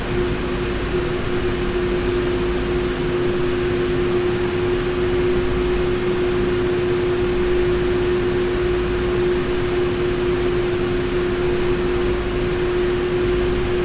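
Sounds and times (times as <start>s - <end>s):
cinema air conditioning: 0.0s - 13.8s.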